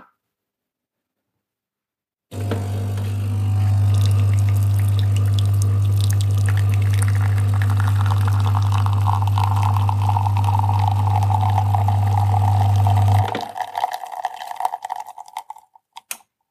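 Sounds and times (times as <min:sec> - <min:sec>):
espresso machine pump humming: 0:02.4 - 0:15.5
coffee trickling and hissing into cup: 0:03.3 - 0:16.1.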